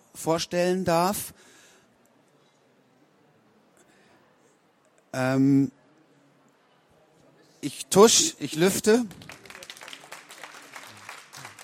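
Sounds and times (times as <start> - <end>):
speech: 0.2 - 1.5, 5.2 - 5.8, 7.6 - 9.4
audience applause: 9.0 - 11.6.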